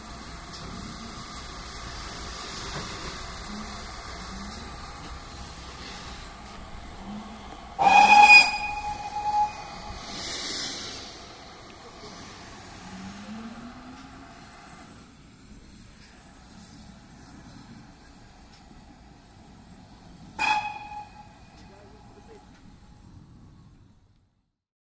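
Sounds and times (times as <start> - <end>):
train approaching: 0.0 - 24.5
train horn tooting: 7.8 - 10.0, 20.4 - 21.7.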